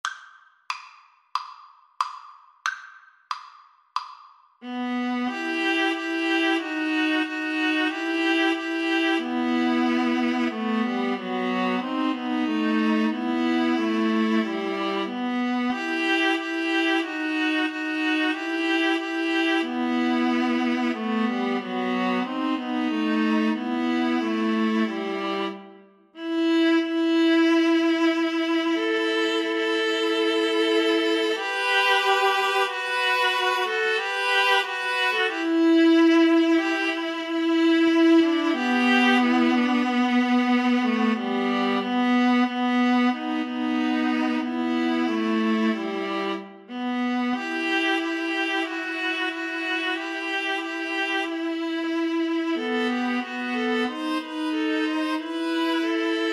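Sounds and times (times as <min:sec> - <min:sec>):
viola trio playing: 0:04.6 - 0:56.3.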